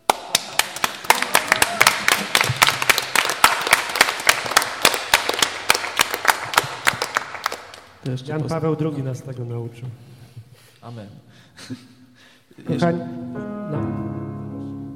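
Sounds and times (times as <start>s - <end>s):
short applause: 0.1s - 7.9s
speech: 8.0s - 10.1s, 10.8s - 12.0s, 12.6s - 13.9s.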